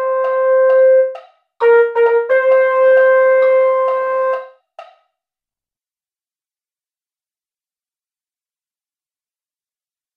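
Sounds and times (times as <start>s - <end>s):
mellophone: 0.0s - 4.5s.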